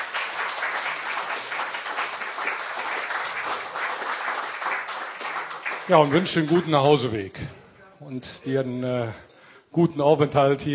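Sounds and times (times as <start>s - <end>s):
audience applause: 0.0s - 7.1s
speech: 5.9s - 10.7s.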